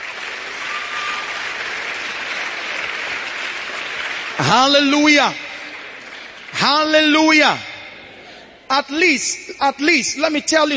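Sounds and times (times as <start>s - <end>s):
audience clapping: 0.0s - 8.0s
speech: 4.4s - 5.4s, 6.6s - 7.7s, 8.7s - 10.7s.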